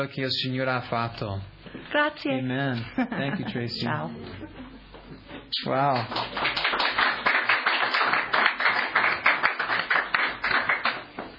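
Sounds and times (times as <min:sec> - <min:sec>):
speech: 0:00.0 - 0:04.6, 0:05.5 - 0:06.6
audience applause: 0:05.9 - 0:11.1.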